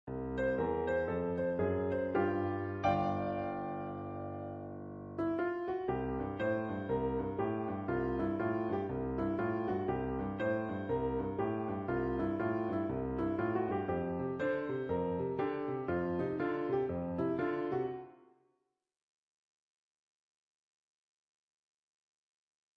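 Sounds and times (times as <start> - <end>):
boogie music: 0.1 - 18.0.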